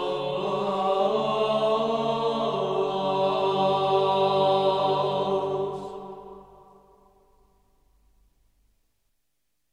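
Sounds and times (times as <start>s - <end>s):
Greek Byzantine choir chanting a sticheron: 0.0s - 7.1s.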